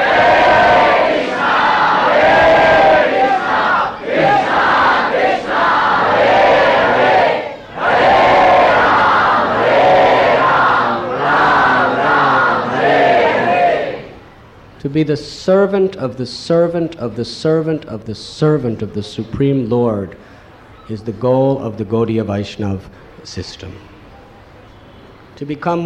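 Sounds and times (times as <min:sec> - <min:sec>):
crowd loudly chanting a name in unison: 0:00.0 - 0:14.2
speech: 0:14.9 - 0:20.3, 0:20.9 - 0:23.9, 0:25.4 - 0:25.8.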